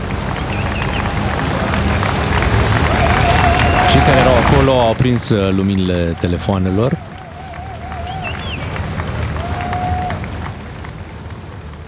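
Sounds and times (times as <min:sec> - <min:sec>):
large crowd applauding: 0:00.0 - 0:11.8
scattered whistles from the crowd: 0:00.3 - 0:01.2, 0:02.9 - 0:04.2, 0:07.5 - 0:08.8
speech: 0:04.6 - 0:07.1.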